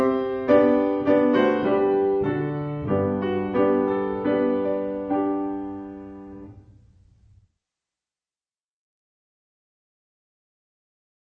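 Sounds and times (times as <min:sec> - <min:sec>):
musical accompaniment: 0:00.0 - 0:07.2.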